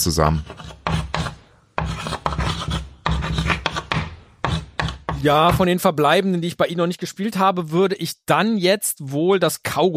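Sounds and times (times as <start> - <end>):
speech: 0.0 - 0.8, 5.2 - 9.9
chalk scraping on school blackboard: 0.0 - 5.3.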